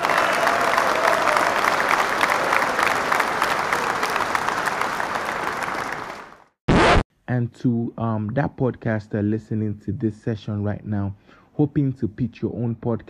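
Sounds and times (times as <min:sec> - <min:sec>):
applause: 0:00.0 - 0:06.6
speech: 0:07.4 - 0:13.0.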